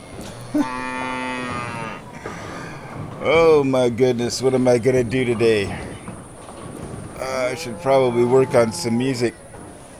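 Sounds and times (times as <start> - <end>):
cattle mooing: 0.3 - 2.3, 7.2 - 9.4
speech: 0.5 - 1.0, 3.2 - 5.9, 7.5 - 9.4.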